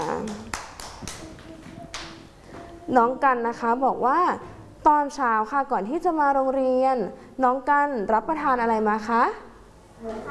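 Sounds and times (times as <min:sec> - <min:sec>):
children clapping at school: 0:00.0 - 0:02.3
speech: 0:02.9 - 0:10.2.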